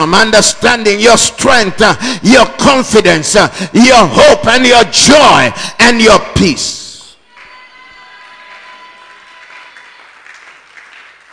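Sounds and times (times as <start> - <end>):
speech: 0.0 - 6.8
audience clapping: 7.3 - 11.3.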